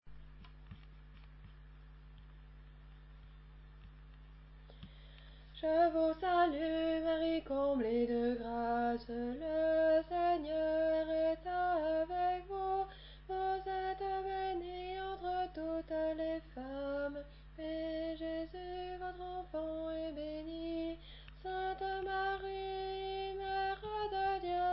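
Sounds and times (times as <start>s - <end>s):
alto voice singing: 5.6s - 24.7s.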